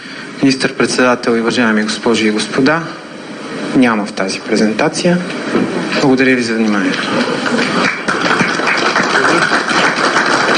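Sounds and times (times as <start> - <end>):
speech: 0.4 - 3.0, 3.8 - 8.4
audience applause: 6.8 - 10.5.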